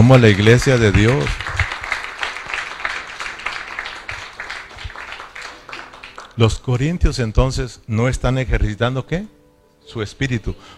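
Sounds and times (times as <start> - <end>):
speech: 0.0 - 1.5, 6.4 - 10.7
audience applause: 0.0 - 6.4.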